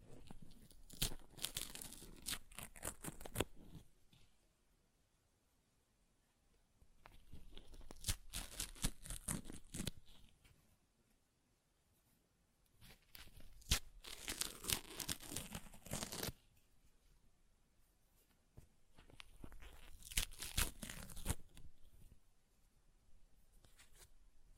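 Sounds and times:
paper being ripped and torn: 0.3s - 3.8s, 7.3s - 10.1s, 13.1s - 16.4s, 19.5s - 21.6s.

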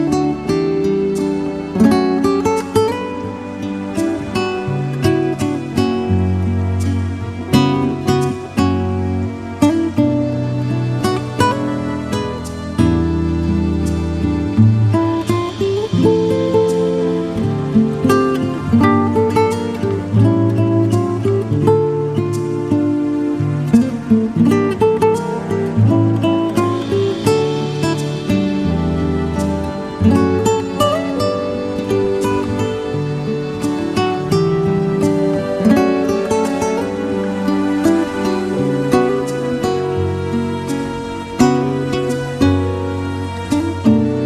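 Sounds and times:
smooth jazz: 0.0s - 44.2s.

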